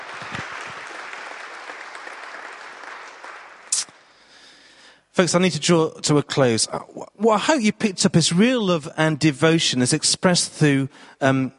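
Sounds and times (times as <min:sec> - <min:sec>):
audience applause: 0:00.0 - 0:03.9
speech: 0:05.2 - 0:11.5.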